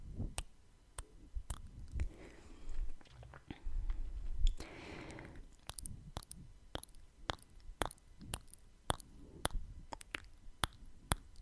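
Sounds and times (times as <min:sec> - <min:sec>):
ASMR sharp tongue clicks and smacks: 0:00.3 - 0:02.1, 0:04.4 - 0:11.4
wet squishy chewing-like mouth textures: 0:05.5 - 0:11.4.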